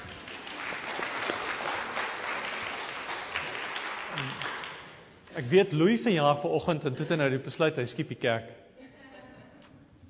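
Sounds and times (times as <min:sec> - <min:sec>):
church congregation applauding for a member's birthday: 0:00.0 - 0:05.2
speech: 0:05.4 - 0:08.6.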